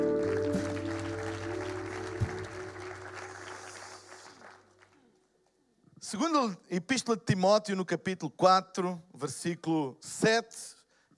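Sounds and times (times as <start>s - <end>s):
audience applause for the band: 0.0s - 5.2s
speech: 6.1s - 11.1s.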